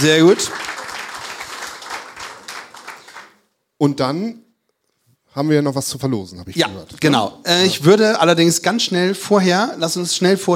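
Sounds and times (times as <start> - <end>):
speech: 0.0 - 0.7, 3.8 - 4.4, 5.4 - 10.5
crowd applauding: 0.0 - 3.5.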